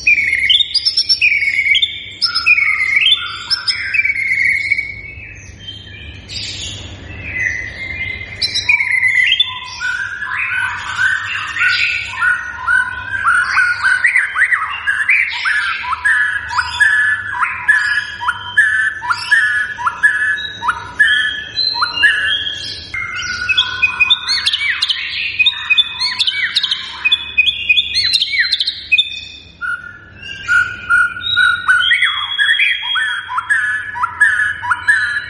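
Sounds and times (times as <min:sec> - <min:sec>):
white-rumped shama song: 0:00.0 - 0:06.3, 0:07.2 - 0:35.2.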